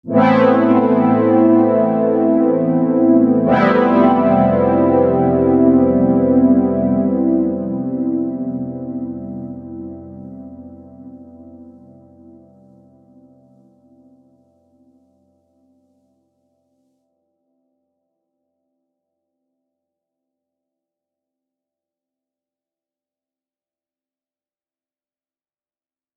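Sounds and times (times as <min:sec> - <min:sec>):
synth pad: 0:00.1 - 0:12.4.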